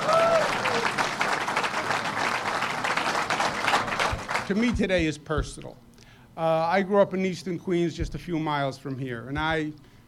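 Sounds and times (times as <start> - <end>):
crowd applauding: 0.0 - 5.0
speech: 4.5 - 5.8, 6.4 - 9.9.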